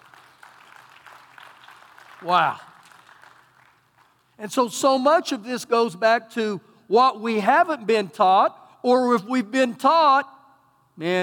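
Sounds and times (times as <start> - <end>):
audience clapping: 0.0 - 4.4
speech: 2.2 - 2.7, 4.4 - 10.3, 11.0 - 11.2.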